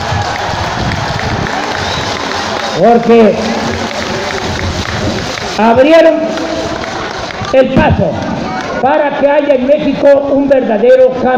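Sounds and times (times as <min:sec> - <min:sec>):
crowd applauding and cheering at a political rally in Mexico: 0:00.0 - 0:09.1
speech: 0:02.8 - 0:03.6, 0:05.6 - 0:06.5, 0:07.5 - 0:11.3.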